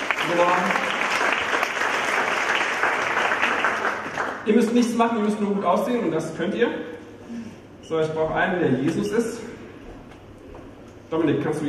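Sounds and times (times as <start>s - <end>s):
crowd clapping: 0.0s - 4.8s
speech: 0.3s - 0.8s, 4.4s - 7.0s, 7.9s - 9.4s, 11.1s - 11.6s.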